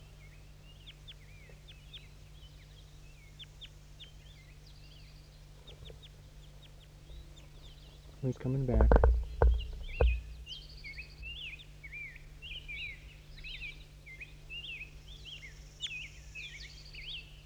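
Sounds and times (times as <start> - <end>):
low constant hum: 0.0 - 17.4
wild bird twittering chirps: 0.2 - 17.4
speech: 8.2 - 9.2
brief thump: 8.6 - 11.4.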